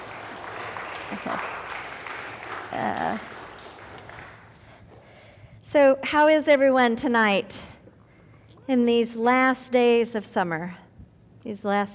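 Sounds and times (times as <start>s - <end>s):
round of applause: 0.0s - 4.6s
speech: 1.1s - 1.6s, 2.7s - 3.4s, 5.7s - 7.7s, 8.7s - 10.8s, 11.4s - 11.9s.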